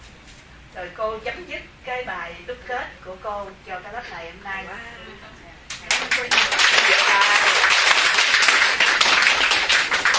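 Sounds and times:
speech: 0.8 - 5.4, 6.0 - 7.4
Buddhist study class applauding at the close of a teaching session in Texas: 5.8 - 10.1.

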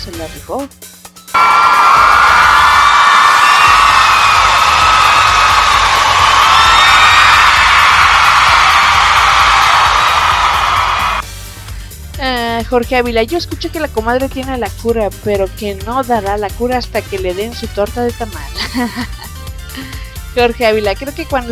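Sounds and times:
speech: 0.0 - 1.8, 12.7 - 19.2, 19.8 - 21.5
crowd cheering and whooping: 1.4 - 11.2
laughter: 18.6 - 19.9.

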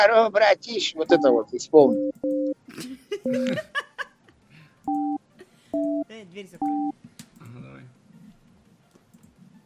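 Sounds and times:
speech: 0.0 - 3.8, 6.1 - 7.0
electronic telephone tones from a call being placed: 1.1 - 2.6, 4.9 - 5.2, 5.8 - 6.0, 6.6 - 6.9
people laughing and chuckling: 2.7 - 4.4.

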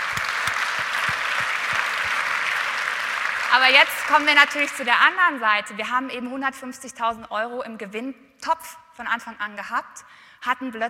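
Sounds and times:
audience applause at an entrepreneurship award ceremony: 0.0 - 4.8
speech: 3.5 - 10.8.

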